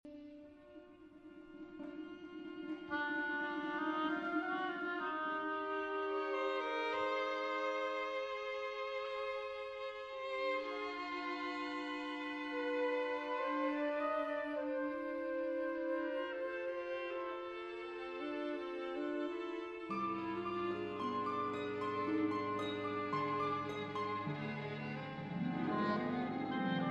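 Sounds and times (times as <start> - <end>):
miniature fugue: 0.1 - 26.9.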